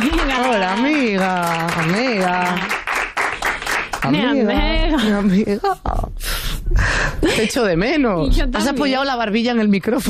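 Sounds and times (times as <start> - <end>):
studio audience applause: 0.0 - 4.4
speech: 5.2 - 6.4, 7.2 - 10.0.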